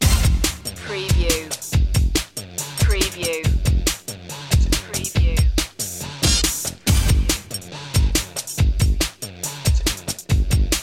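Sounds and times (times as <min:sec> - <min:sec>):
workout music loop: 0:00.0 - 0:10.8.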